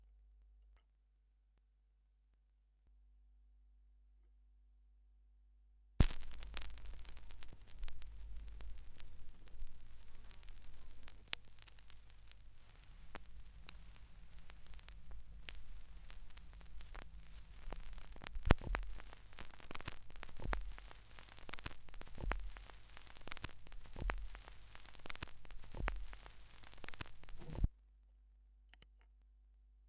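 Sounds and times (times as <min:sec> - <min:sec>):
vinyl record noise: 0:06.0 - 0:27.7.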